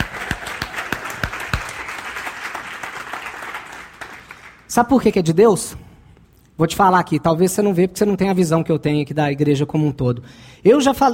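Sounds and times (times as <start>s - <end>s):
applause: 0.0s - 4.7s
speech: 4.8s - 5.8s, 6.6s - 11.1s.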